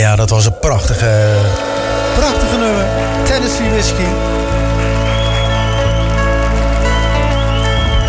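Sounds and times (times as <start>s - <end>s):
speech: 0.0s - 4.6s
applause: 1.6s - 8.0s.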